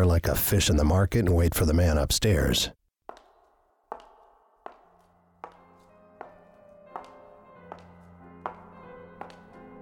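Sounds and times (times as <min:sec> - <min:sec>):
speech: 0:00.0 - 0:02.8
high-heeled shoes walking on a marble floor: 0:03.0 - 0:09.6.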